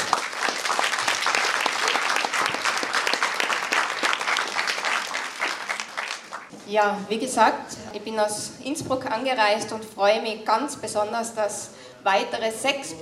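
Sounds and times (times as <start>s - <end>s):
audience applause: 0.0s - 6.5s
speech: 6.7s - 13.0s.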